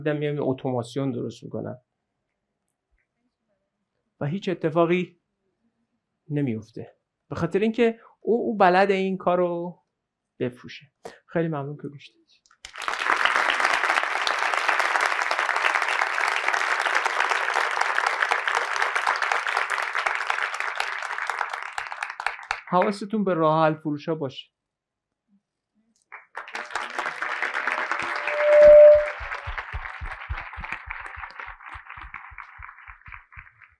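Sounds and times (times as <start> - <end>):
speech: 0.0 - 1.9, 4.2 - 5.2, 6.3 - 9.8, 10.4 - 12.2, 22.7 - 24.6
audience applause: 12.6 - 22.9, 26.2 - 33.7.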